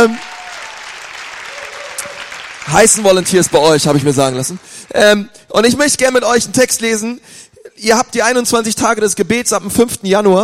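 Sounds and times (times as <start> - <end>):
speech: 0.0 - 0.3, 2.7 - 10.4
crowd applauding: 0.0 - 5.2.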